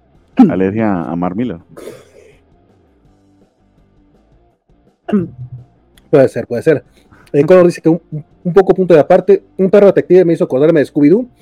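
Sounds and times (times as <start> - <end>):
speech: 0.4 - 2.0, 5.1 - 5.5, 6.1 - 11.4
person coughing: 1.8 - 2.4, 5.1 - 5.7.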